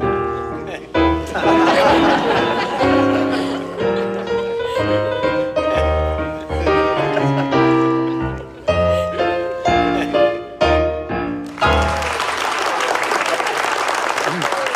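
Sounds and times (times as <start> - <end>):
laughter: 0.4 - 10.5, 12.6 - 14.7
audience applause: 1.4 - 4.7, 11.4 - 14.7.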